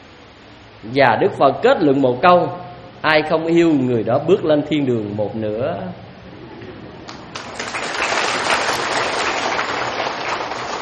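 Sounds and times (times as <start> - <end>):
speech: 0.8 - 6.0
audience clapping at a Buddhist dharma talk: 7.0 - 10.8.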